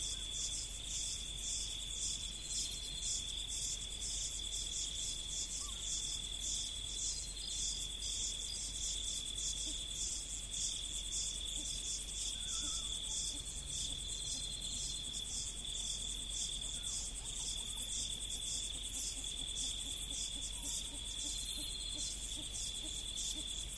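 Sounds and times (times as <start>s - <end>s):
insects in the prairies: 0.0s - 23.7s
jackals in the prairies: 12.3s - 13.0s.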